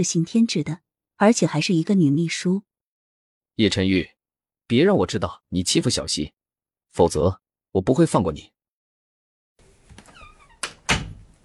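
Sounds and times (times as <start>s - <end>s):
speech: 0.0s - 2.7s, 3.6s - 4.1s, 4.7s - 8.6s
door being closed: 9.7s - 11.4s.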